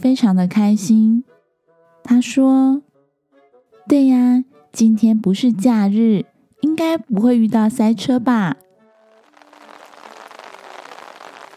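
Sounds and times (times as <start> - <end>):
speech: 0.0 - 1.3, 2.1 - 2.8, 3.9 - 8.6
rain falling: 9.0 - 11.5.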